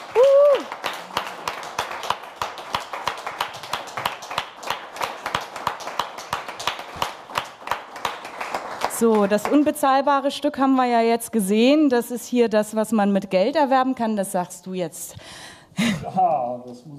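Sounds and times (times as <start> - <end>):
roaring applause: 0.0 - 9.6
speech: 9.0 - 16.9.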